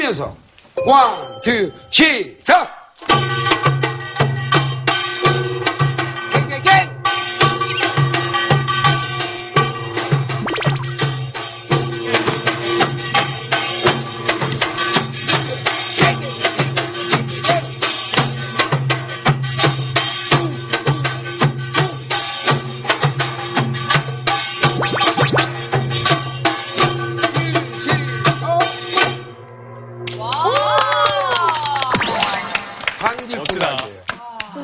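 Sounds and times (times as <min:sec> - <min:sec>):
speech: 0:00.1 - 0:03.5
Korean traditional percussion ensemble playing gongs and drums: 0:03.0 - 0:29.5, 0:30.1 - 0:33.8
whoops and cheers: 0:30.2 - 0:32.3.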